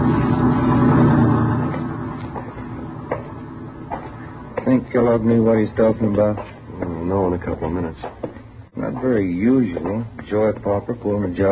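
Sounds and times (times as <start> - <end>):
truck driving past: 0.0 - 6.7
speech: 5.0 - 6.5, 7.1 - 8.2, 8.8 - 11.5.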